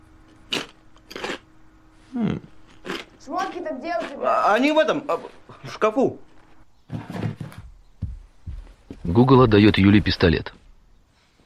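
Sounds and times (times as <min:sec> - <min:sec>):
faint steady hum: 0:00.0 - 0:11.4
crisps crunching from a bag: 0:00.3 - 0:01.4, 0:02.6 - 0:05.2
speech: 0:03.3 - 0:06.3, 0:09.2 - 0:10.6.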